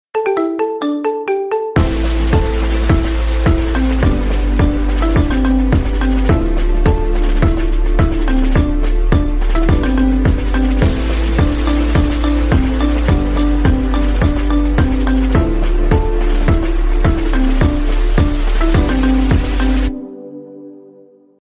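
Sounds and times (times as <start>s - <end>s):
marimba remix: 0.1s - 20.0s.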